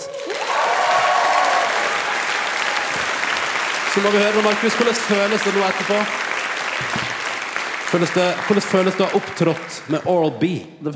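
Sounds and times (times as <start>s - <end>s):
studio audience applause: 0.0s - 10.1s
speech: 4.0s - 6.2s, 6.8s - 7.1s, 7.9s - 10.9s.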